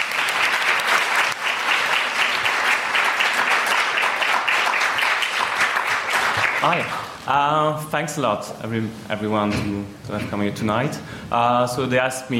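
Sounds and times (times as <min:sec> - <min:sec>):
audience applause: 0:00.0 - 0:07.2
speech: 0:06.6 - 0:12.3.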